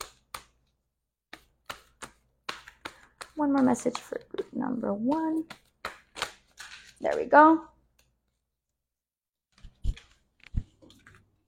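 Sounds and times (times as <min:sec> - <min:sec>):
cards drawn from a deck during a card reading: 0:00.0 - 0:04.5, 0:05.4 - 0:07.3
speech: 0:03.4 - 0:05.6, 0:07.0 - 0:07.7.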